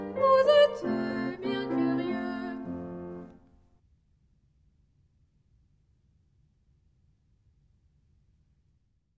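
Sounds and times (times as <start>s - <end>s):
piano chant: 0.0s - 3.4s.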